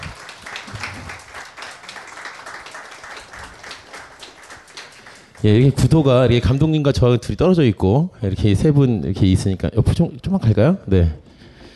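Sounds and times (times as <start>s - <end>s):
audience applauding: 0.0s - 6.6s
speech: 5.4s - 11.3s.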